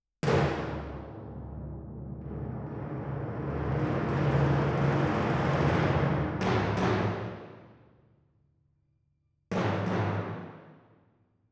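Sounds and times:
timpani: 0.2s - 7.9s, 9.5s - 11.0s.

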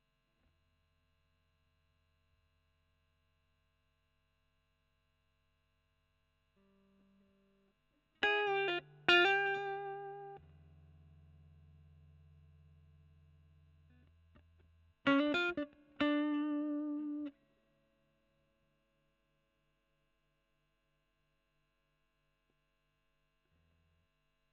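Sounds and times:
overdriven electric guitar: 8.2s - 10.6s, 14.0s - 17.4s.

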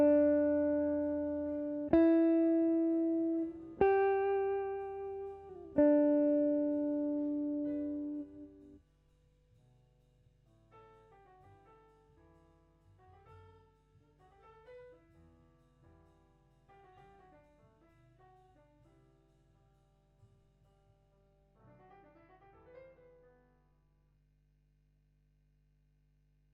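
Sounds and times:
guitar: 0.0s - 8.8s.

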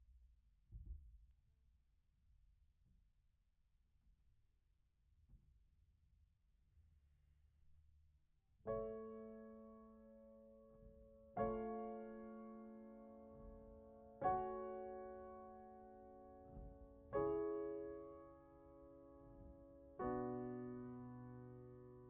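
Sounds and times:
piano: 8.6s - 22.0s.

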